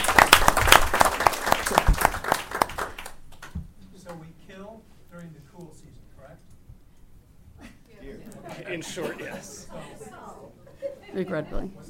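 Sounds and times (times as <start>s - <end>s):
audience applause: 0.0s - 3.5s
laughter: 7.6s - 11.6s
speech: 11.2s - 11.8s.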